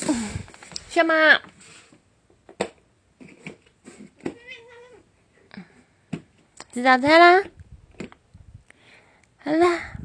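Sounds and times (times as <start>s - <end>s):
speech: 1.0s - 1.5s, 6.8s - 7.6s, 9.4s - 10.0s
cat meowing outside: 4.3s - 5.0s.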